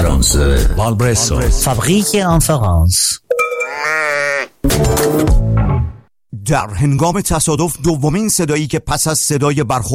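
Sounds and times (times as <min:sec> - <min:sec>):
speech: 0:00.2 - 0:03.2, 0:04.6 - 0:05.6, 0:06.4 - 0:09.9
sheep bleating: 0:03.6 - 0:04.6.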